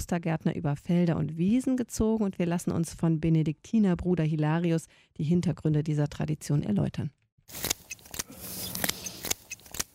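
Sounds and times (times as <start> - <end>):
speech: 0.0 - 7.7
shears cutting tansy plants by the roadside: 7.5 - 9.9.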